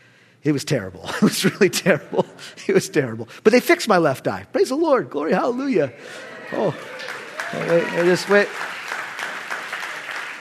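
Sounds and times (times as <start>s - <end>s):
speech: 0.4s - 6.9s, 7.5s - 8.7s
audience applause: 6.0s - 10.4s.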